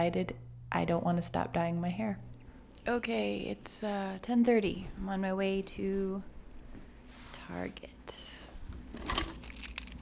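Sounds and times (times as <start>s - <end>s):
speech: 0.0s - 6.3s, 7.5s - 8.3s
keys jangling: 9.0s - 9.9s.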